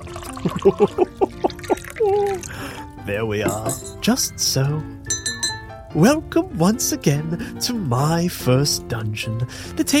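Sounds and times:
cocoa glugging as it is poured into a cup: 0.0s - 2.6s
speech: 0.4s - 1.3s, 2.0s - 5.0s, 6.0s - 9.9s.

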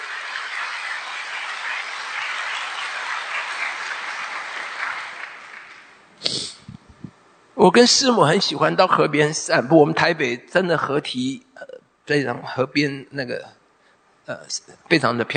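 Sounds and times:
audience applause: 0.0s - 6.0s
speech: 7.6s - 13.6s, 14.3s - 15.3s.

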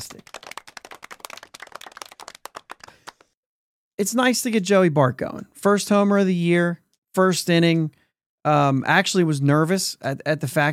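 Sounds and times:
speech: 0.0s - 0.4s, 4.0s - 10.7s
hand clapping: 0.0s - 3.4s.

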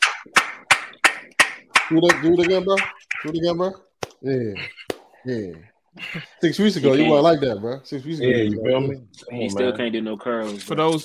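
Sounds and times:
people clapping: 0.0s - 3.2s
speech: 1.9s - 11.0s.

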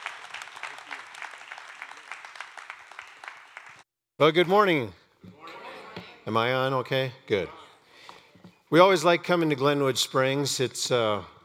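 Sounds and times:
church congregation in Glenwood Springs applauding to welcome a guest speaker: 0.0s - 4.6s
speech: 4.2s - 5.0s, 6.3s - 7.6s, 8.7s - 11.3s.

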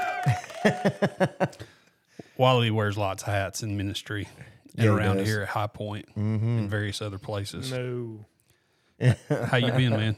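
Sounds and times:
person whooping: 0.0s - 1.1s
laughter: 0.0s - 1.6s, 9.0s - 10.1s
hands clapping: 0.0s - 1.7s
speech: 0.2s - 1.6s, 2.4s - 8.3s, 9.0s - 10.1s.

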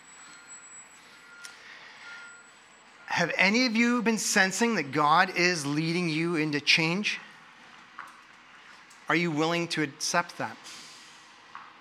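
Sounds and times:
beeping outside: 0.0s - 7.4s
speech: 3.2s - 7.3s, 9.1s - 10.8s.

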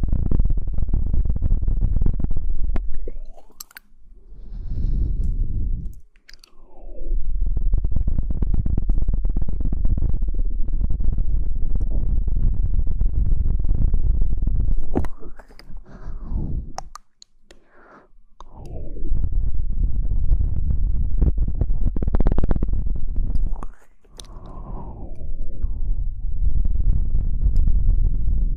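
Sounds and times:
wet mouth rumble: 0.0s - 28.5s
sharp clicks: 2.8s - 3.9s, 5.9s - 6.8s, 16.7s - 17.7s.

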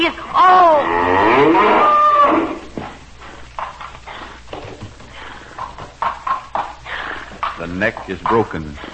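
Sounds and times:
bull bellowing while fighting a smaller bull: 0.5s - 2.6s
speech: 7.8s - 8.9s.

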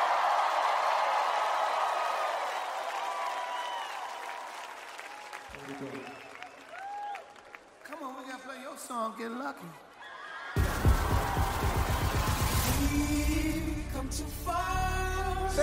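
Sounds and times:
crowd shouting and whooping: 0.0s - 7.5s, 10.0s - 13.0s
New York City concert audience applauding and cheering: 0.0s - 8.6s, 10.0s - 13.6s
speech: 5.6s - 6.3s, 8.8s - 9.9s, 12.8s - 15.6s.

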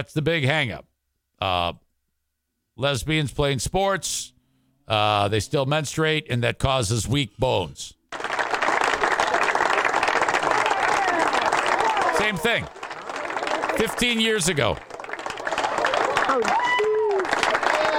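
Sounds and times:
speech: 0.0s - 1.8s, 2.8s - 8.3s, 12.2s - 12.8s, 13.8s - 14.9s, 16.3s - 16.6s
sports crowd cheering: 8.1s - 17.9s.

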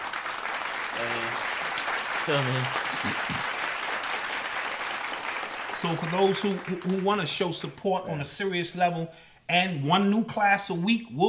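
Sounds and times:
applause sound effect: 0.0s - 7.7s
speech: 2.3s - 3.6s, 5.8s - 11.2s.

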